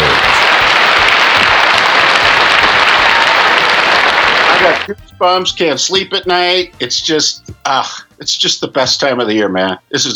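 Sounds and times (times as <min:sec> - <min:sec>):
audience applause: 0:00.0 - 0:04.9
speech: 0:04.6 - 0:10.1.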